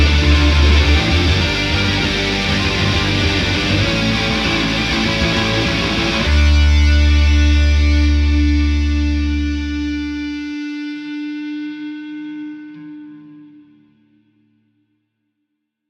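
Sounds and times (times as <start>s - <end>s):
rock music: 0.0s - 11.2s.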